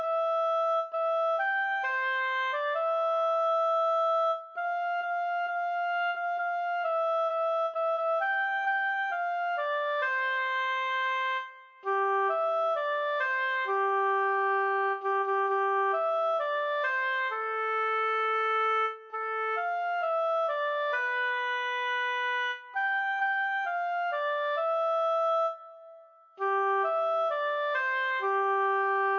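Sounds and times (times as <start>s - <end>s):
solo oboe: 0.0s - 29.1s.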